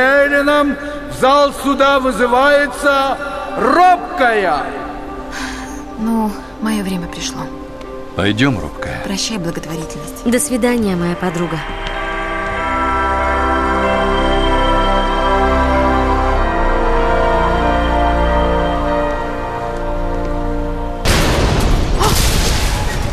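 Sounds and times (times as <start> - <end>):
speech: 0.0 - 5.4, 6.0 - 7.6, 8.2 - 12.0
steady low humming tones: 9.6 - 21.0
heavy door slamming shut: 21.0 - 23.1.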